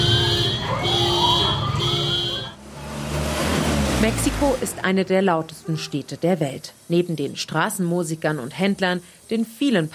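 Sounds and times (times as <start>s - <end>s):
earthquake warning siren: 0.0s - 2.6s
speech: 4.0s - 9.9s.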